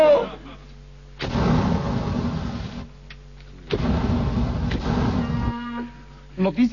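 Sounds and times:
atomic bomb explosion in New York: 1.2s - 3.0s, 3.7s - 5.6s.

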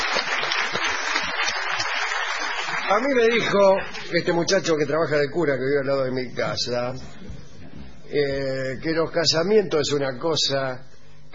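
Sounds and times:
applause for the groom at a wedding ceremony: 0.0s - 4.3s
speech: 2.9s - 7.4s, 8.1s - 11.3s.

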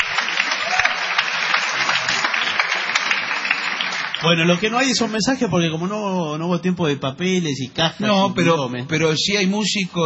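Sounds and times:
people applauding in a parking lot: 0.0s - 5.6s
speech: 4.2s - 10.0s.

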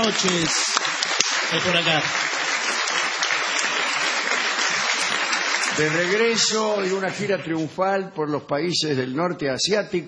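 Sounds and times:
speech: 0.0s - 2.4s, 5.8s - 10.0s
audience ovation: 0.0s - 7.6s.

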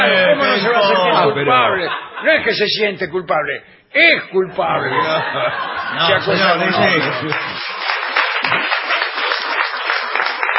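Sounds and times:
laughter: 0.0s - 2.7s, 4.5s - 9.6s
speech: 1.2s - 7.8s
audience applause: 6.2s - 10.5s.

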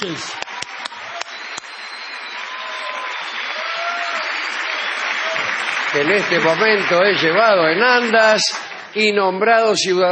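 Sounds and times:
speech: 0.0s - 0.4s, 6.0s - 10.1s
crowd applauding: 0.0s - 10.1s
whistles and cheers: 0.2s - 6.8s.

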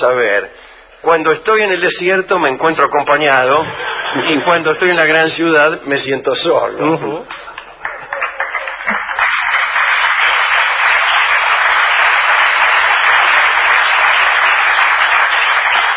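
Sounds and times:
speech: 0.0s - 7.5s
laughter: 3.6s - 5.4s
audience applause: 7.5s - 15.9s.

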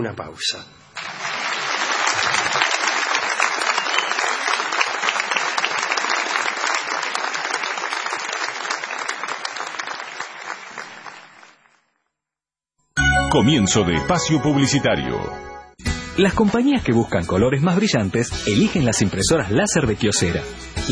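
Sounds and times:
speech: 0.0s - 0.8s, 13.3s - 15.5s, 16.2s - 20.9s
studio audience applauding: 1.0s - 11.9s.

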